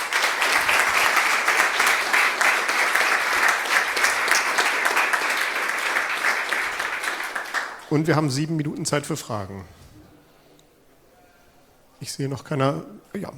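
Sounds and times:
audience applause: 0:00.0 - 0:08.1
speech: 0:07.9 - 0:09.8, 0:12.0 - 0:13.3.

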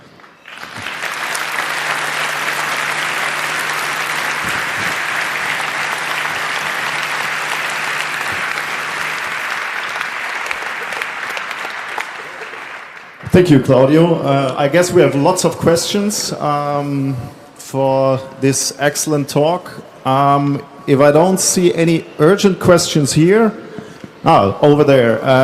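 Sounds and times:
audience applause: 0:00.0 - 0:13.3
speech: 0:13.4 - 0:23.6, 0:24.2 - 0:25.4.

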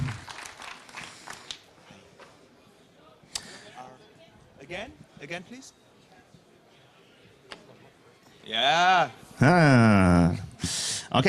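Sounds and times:
audience applause: 0:00.0 - 0:01.7
speech: 0:04.7 - 0:05.8, 0:08.5 - 0:10.4.

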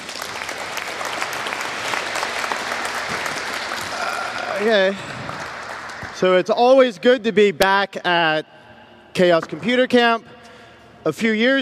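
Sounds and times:
audience applause: 0:00.0 - 0:06.2
speech: 0:04.6 - 0:05.1, 0:06.2 - 0:08.6, 0:09.2 - 0:10.3, 0:11.0 - 0:11.5.

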